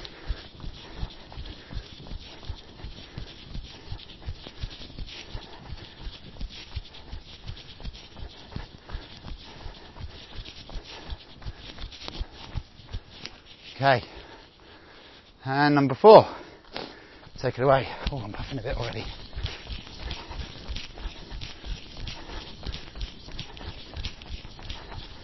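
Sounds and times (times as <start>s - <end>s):
jogging footsteps in a forest during a running speed session: 0.0s - 25.2s
speech: 13.8s - 14.2s, 15.4s - 16.4s, 17.4s - 19.2s.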